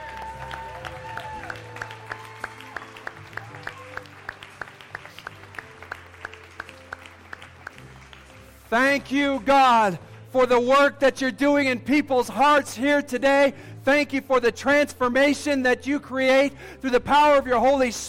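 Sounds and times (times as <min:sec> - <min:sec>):
audience clapping in time: 0:00.0 - 0:11.4
speech: 0:08.7 - 0:18.0.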